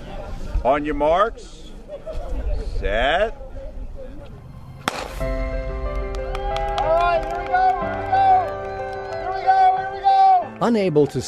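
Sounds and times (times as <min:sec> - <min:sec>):
speech: 0:00.6 - 0:03.4, 0:10.6 - 0:11.2
crowd cheering at a track race: 0:04.9 - 0:11.2.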